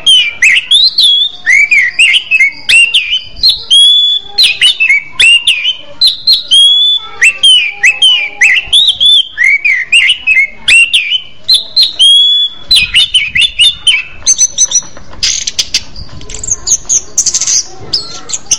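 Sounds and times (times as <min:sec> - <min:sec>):
orange-headed thrush singing: 0:00.0 - 0:18.5.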